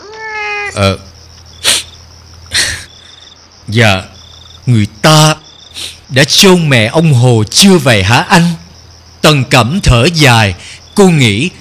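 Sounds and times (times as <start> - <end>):
cat meowing: 0.0 - 0.9
speech: 0.8 - 1.1, 3.7 - 4.1, 4.7 - 8.6, 9.2 - 11.5.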